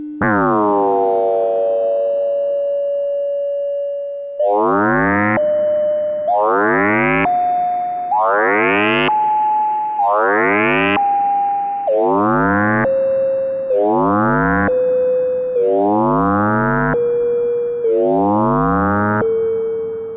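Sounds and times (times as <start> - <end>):
analog synth through delay mod module: 0.2 - 20.1.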